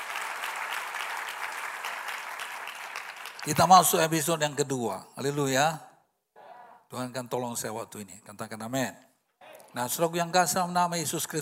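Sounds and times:
audience clapping: 0.0 - 4.2
speech: 3.4 - 5.9, 6.9 - 9.1, 9.7 - 11.3.

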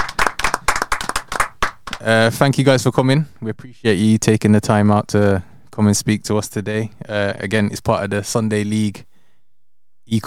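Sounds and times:
people clapping: 0.0 - 2.1
speech: 2.0 - 9.1, 10.1 - 10.2.

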